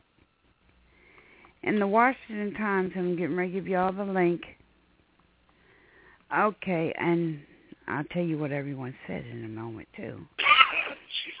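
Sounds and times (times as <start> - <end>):
speech: 1.6 - 4.6, 6.3 - 10.4
person sneezing: 10.4 - 11.3.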